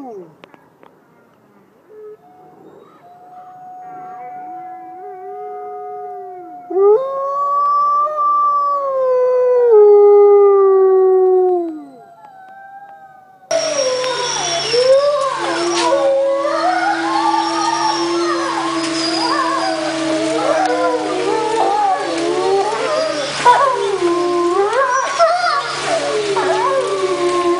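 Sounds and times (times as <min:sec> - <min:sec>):
wolf howling: 0:01.9 - 0:27.5.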